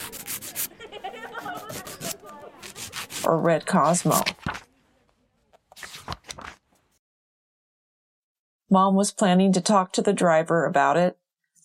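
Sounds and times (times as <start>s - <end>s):
nail file rubbing on fingernails: 0.0s - 0.7s, 1.3s - 3.3s
laughter: 0.5s - 2.8s
speech: 3.2s - 4.5s, 8.7s - 11.6s.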